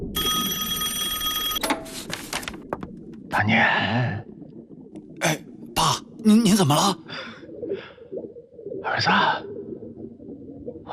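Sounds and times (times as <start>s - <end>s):
telephone bell ringing: 0.1s - 1.8s
speech: 3.4s - 4.3s, 6.2s - 7.3s, 8.9s - 9.4s.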